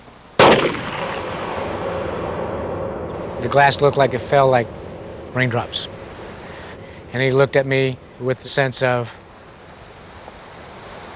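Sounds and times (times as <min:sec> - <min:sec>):
gunshots: 0:00.4 - 0:08.4
speech: 0:03.4 - 0:06.0, 0:07.1 - 0:09.2.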